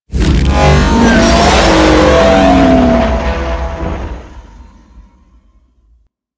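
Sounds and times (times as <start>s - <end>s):
ship engines during attack maneuver: 0.1s - 5.7s.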